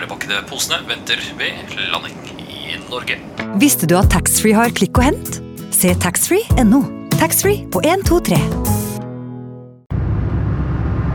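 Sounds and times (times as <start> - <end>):
speech: 0.3 - 8.7
car driving fast road and engine roar: 9.9 - 11.1.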